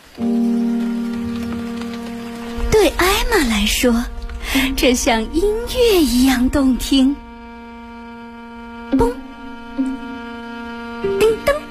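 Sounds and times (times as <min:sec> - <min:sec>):
big raindrops pattering on a small shell: 0:00.0 - 0:08.8
speech: 0:02.8 - 0:07.2, 0:08.9 - 0:09.2.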